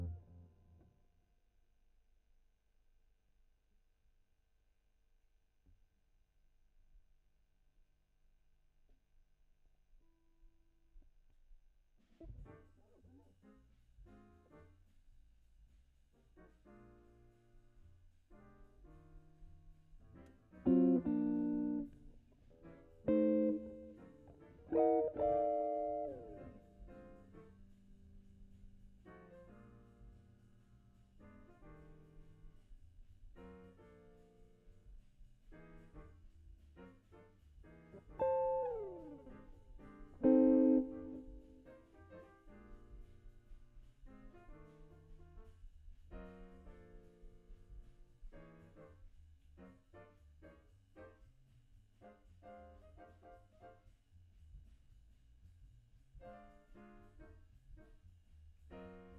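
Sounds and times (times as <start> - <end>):
guitar: 0.0 - 0.5, 20.1 - 29.9, 36.8 - 42.9.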